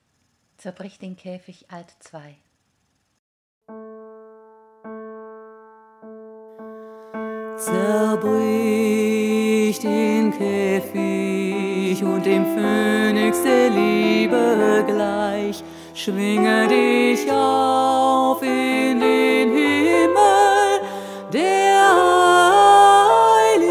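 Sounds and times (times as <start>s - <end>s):
alto voice singing in German: 7.1s - 23.6s.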